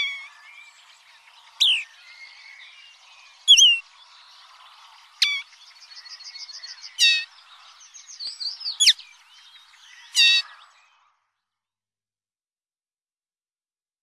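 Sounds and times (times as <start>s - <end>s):
Linotte melodieuse birds calling: 0.0s - 11.1s.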